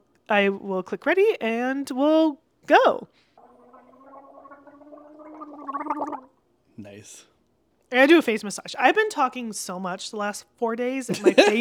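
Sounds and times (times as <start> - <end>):
speech: 0.3 - 3.3, 6.8 - 7.3, 7.9 - 11.6
person drinking tea and water with a gurgle: 3.4 - 6.4.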